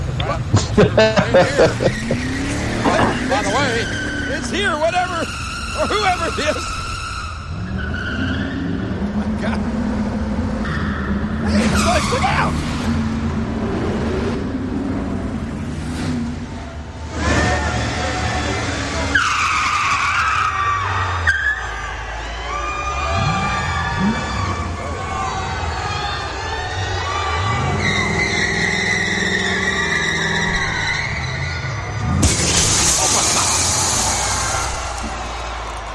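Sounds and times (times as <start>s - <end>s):
Ford Mustang engine revving: 0.0s - 21.6s, 23.0s - 35.9s
Ford Mustang tires squealing: 0.0s - 35.9s
speech: 0.4s - 2.3s, 3.8s - 6.8s, 11.8s - 12.7s
laughter: 0.5s - 3.6s
crowd roaring and shouting: 1.5s - 6.9s, 16.5s - 35.9s
Ford Mustang crashing through glass: 32.0s - 35.2s.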